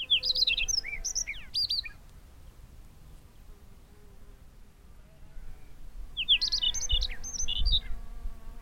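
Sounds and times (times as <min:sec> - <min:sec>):
Chinese rubythroat Calliope tschebaiewi: 0:00.0 - 0:02.0, 0:06.2 - 0:08.0.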